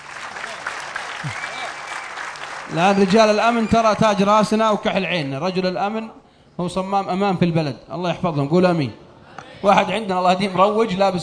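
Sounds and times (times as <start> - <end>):
audience of young men applauding a security officer: 0.0 - 4.2
speech: 1.2 - 1.5, 2.7 - 9.0, 9.6 - 11.2.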